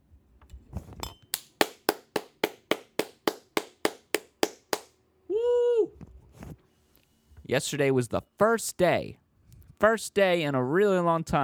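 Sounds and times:
single pair of hands clapping: 1.0s - 4.9s
speech: 7.5s - 9.2s, 9.8s - 11.4s.

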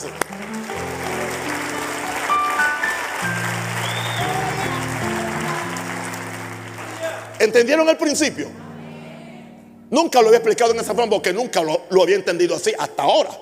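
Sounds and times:
crowd applauding: 0.0s - 7.9s
speech: 7.4s - 8.6s, 9.9s - 13.4s.

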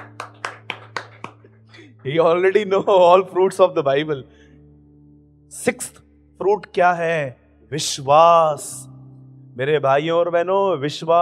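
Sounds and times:
people clapping in unison: 0.0s - 1.9s
speech: 2.0s - 4.4s, 5.5s - 8.9s, 9.6s - 11.2s.

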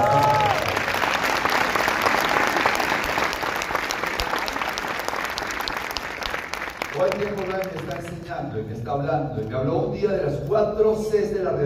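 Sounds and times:
audience applause: 0.0s - 8.3s
speech: 7.4s - 11.6s.

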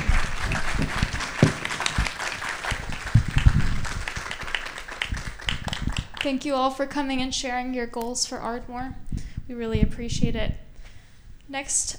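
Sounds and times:
round of applause for candidates: 0.0s - 6.3s
speech: 6.2s - 10.6s, 11.5s - 11.9s.

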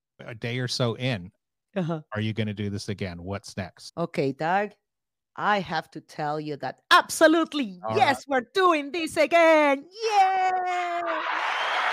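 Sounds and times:
speech: 0.2s - 4.8s, 5.4s - 11.5s
long steady whooping cry: 10.4s - 11.9s
crowd cheering wildly: 10.9s - 11.9s.

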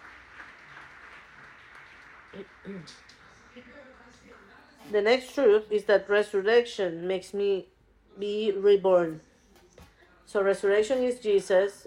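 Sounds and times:
audience applause: 0.0s - 4.0s
speech: 2.3s - 9.3s, 10.3s - 11.8s.

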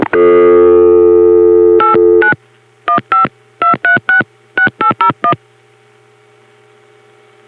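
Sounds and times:
telephone dial tone: 0.1s - 5.4s.

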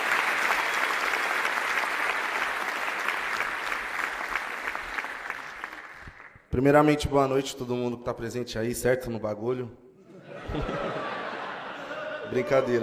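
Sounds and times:
audience applause: 0.0s - 6.4s
speech: 6.6s - 9.8s, 10.5s - 10.8s, 12.3s - 12.8s
laughter: 10.0s - 12.8s.

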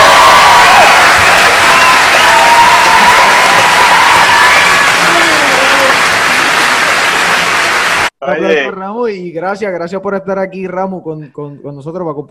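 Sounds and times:
audience applause: 0.0s - 8.2s
speech: 8.3s - 12.3s.

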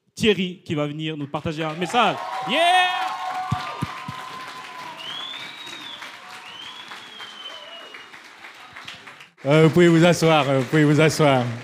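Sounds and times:
speech: 0.2s - 3.6s, 9.4s - 11.6s
audience applause: 1.7s - 11.6s
whoops: 2.2s - 9.0s.

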